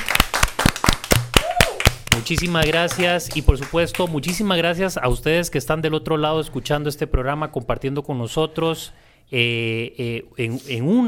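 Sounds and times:
applause: 0.0 - 4.6
speech: 2.2 - 11.0.

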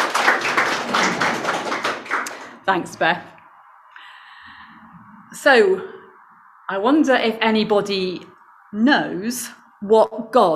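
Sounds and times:
crowd applauding: 0.0 - 2.6
speech: 2.7 - 3.3, 5.4 - 6.0, 6.7 - 10.5.

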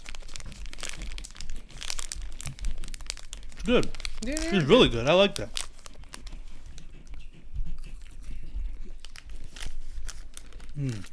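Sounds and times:
snack packaging rustling: 0.0 - 6.8, 9.0 - 11.1
crunchy snack being eaten: 0.0 - 11.1
speech: 3.6 - 5.6.

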